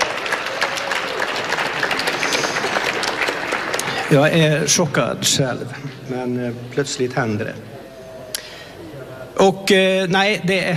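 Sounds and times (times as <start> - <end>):
audience applause: 0.0 - 4.6
speech: 4.1 - 7.8, 9.4 - 10.7.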